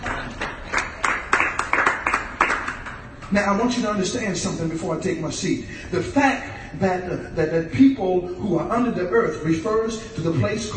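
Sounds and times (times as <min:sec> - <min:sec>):
audience clapping hands in praise: 0:00.0 - 0:03.1
speech: 0:03.3 - 0:10.7.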